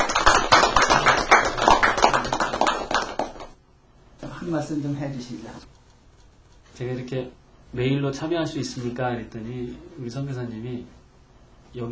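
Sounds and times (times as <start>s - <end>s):
audience applause welcoming a guest: 0.0s - 3.6s
speech: 4.5s - 5.8s, 6.8s - 11.0s, 11.7s - 11.9s.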